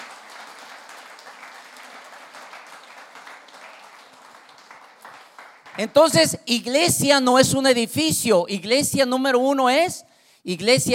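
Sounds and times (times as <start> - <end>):
audience applause: 0.0 - 5.8
speech: 5.8 - 10.9.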